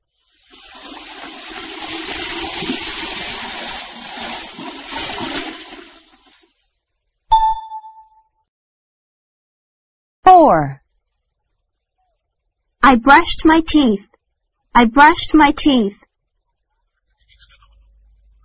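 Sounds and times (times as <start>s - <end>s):
water splashing as someone washes their face: 0.3s - 6.6s
bright ding: 7.3s - 8.3s
speech: 10.5s - 10.8s, 12.8s - 14.1s, 14.8s - 16.1s.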